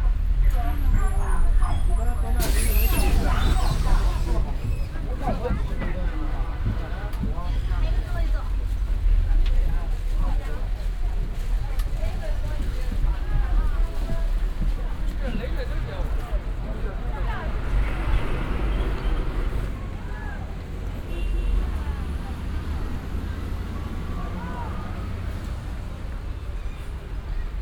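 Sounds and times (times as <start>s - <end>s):
bus journey in Beijing: 0.0s - 27.5s.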